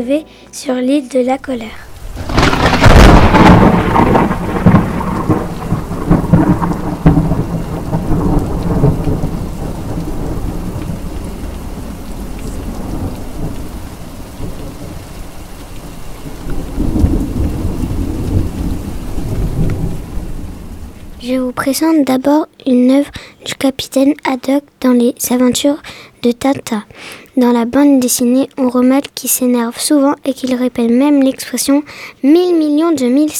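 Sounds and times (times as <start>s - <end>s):
speech: 0.0s - 1.9s, 21.4s - 33.3s
stormy sea with big waves: 1.9s - 21.5s.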